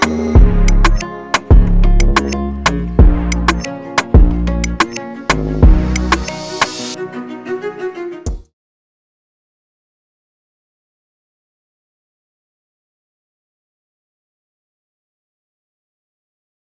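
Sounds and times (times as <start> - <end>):
Afrobeat guitar beat: 0.0 - 7.0.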